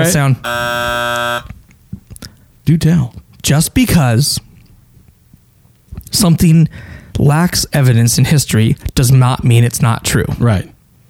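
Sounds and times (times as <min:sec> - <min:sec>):
speech: 0:00.0 - 0:01.6, 0:02.7 - 0:04.5, 0:06.1 - 0:10.7
loud electronic buzzer: 0:00.4 - 0:01.5.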